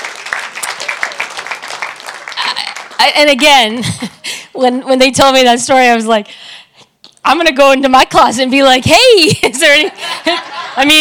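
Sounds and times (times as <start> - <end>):
audience hand clapping: 0.0 - 3.6
speech: 3.0 - 6.6, 7.2 - 11.0.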